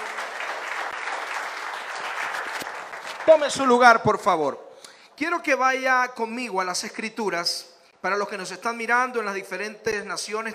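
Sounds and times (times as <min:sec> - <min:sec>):
audience applause: 0:00.0 - 0:03.7
speech: 0:03.3 - 0:04.6, 0:05.2 - 0:10.5.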